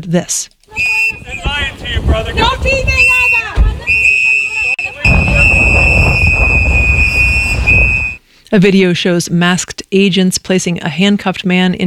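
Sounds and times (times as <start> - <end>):
speech: 0.0 - 3.3, 8.5 - 11.8
indistinct voices: 0.6 - 8.1
crowd noise: 0.6 - 8.2
activists blowing whistles: 0.7 - 1.8, 2.9 - 8.2.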